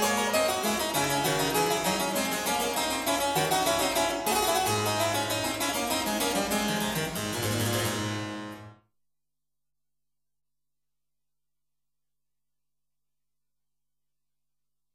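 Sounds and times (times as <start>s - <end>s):
harpsichord: 0.0s - 8.8s.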